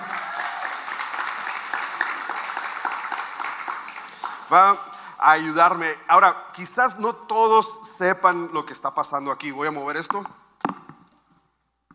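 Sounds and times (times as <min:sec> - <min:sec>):
audience applause: 0:00.0 - 0:04.8
speech: 0:04.5 - 0:10.4.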